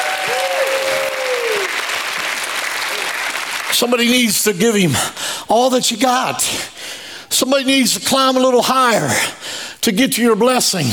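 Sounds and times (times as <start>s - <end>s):
audience applause: 0.0s - 3.8s
speech: 3.8s - 10.9s.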